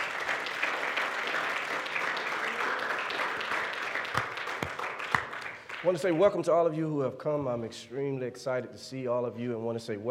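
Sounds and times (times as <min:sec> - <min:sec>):
audience hand clapping: 0:00.0 - 0:06.3
speech: 0:05.8 - 0:10.1.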